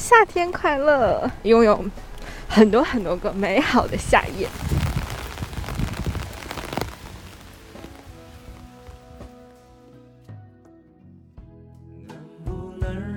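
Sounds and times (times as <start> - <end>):
speech: 0.1 - 4.8
heavy rain pouring: 1.9 - 10.0.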